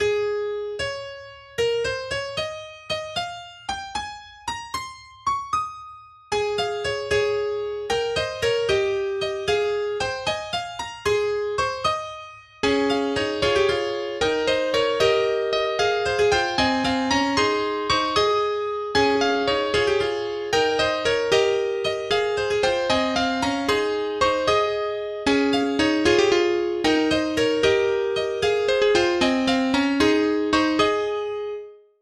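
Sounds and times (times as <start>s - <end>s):
canon in A-flat major: 0.0s - 31.9s.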